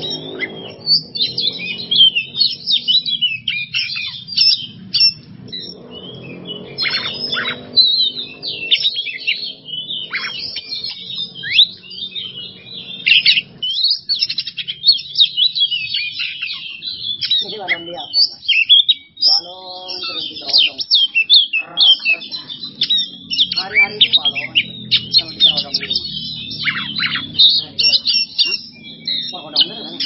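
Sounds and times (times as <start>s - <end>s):
Oriental magpie-robin song: 0.0s - 30.0s.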